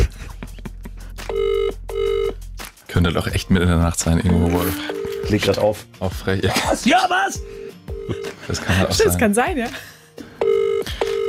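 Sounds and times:
foreign phone line ringing tone: 0:01.3 - 0:02.3, 0:04.6 - 0:05.5, 0:07.6 - 0:08.4, 0:10.4 - 0:11.2
speech: 0:03.0 - 0:09.9.

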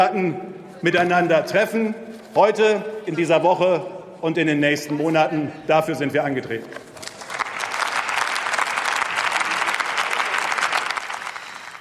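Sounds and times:
speech: 0:00.0 - 0:06.8
applause in parliament: 0:07.0 - 0:11.8.

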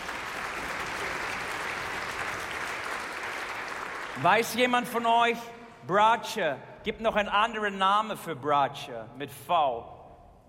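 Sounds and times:
audience applause: 0:00.0 - 0:04.3
speech: 0:04.2 - 0:10.0.

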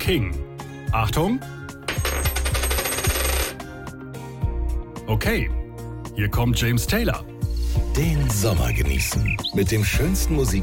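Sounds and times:
speech: 0:00.1 - 0:01.6, 0:05.1 - 0:05.6, 0:06.2 - 0:07.3, 0:08.0 - 0:10.6
coin being tossed: 0:01.9 - 0:03.6.

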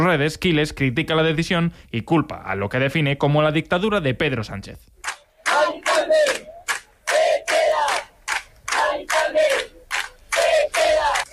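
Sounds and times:
speech: 0:00.0 - 0:05.0
crowd of neighbours chanting protest shouts: 0:05.2 - 0:11.3.

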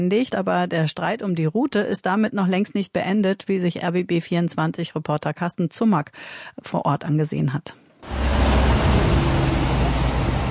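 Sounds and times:
speech: 0:00.0 - 0:08.2
trucks and car traffic passing through Fürstenberg: 0:08.0 - 0:10.5.

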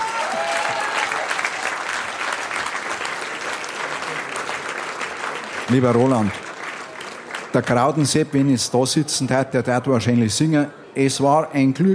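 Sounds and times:
audience applause: 0:00.0 - 0:08.4
speech: 0:05.7 - 0:06.4, 0:07.6 - 0:11.9.

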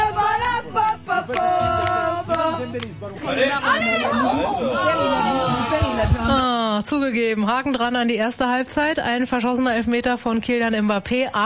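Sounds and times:
football fans cheering and chanting in a bar: 0:00.0 - 0:06.3
speech: 0:02.6 - 0:11.4.

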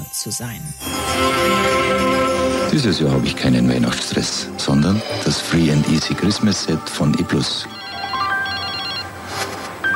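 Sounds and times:
speech: 0:00.1 - 0:07.8
electronic telephone ringtone signalling an incoming call: 0:07.5 - 0:09.9.

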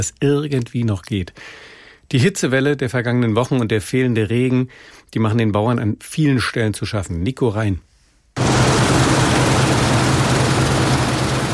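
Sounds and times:
speech: 0:00.0 - 0:08.5
combine harvester engine in a field: 0:08.4 - 0:11.5.

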